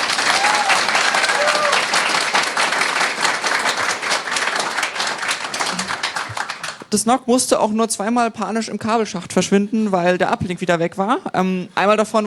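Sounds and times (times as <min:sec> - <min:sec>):
audience applause: 0:00.0 - 0:06.9
speech: 0:06.9 - 0:12.2.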